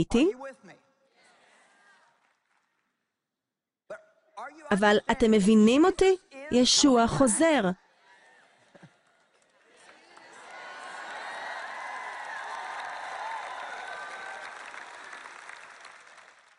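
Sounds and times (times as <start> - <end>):
speech: 0.0 - 0.5, 4.7 - 7.8
audience clapping: 1.6 - 3.1, 8.1 - 16.5.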